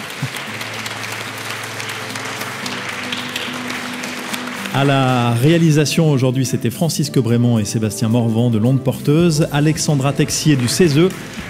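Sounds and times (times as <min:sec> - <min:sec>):
audience applause: 0:00.0 - 0:05.8, 0:10.4 - 0:11.4
speech: 0:04.8 - 0:11.4.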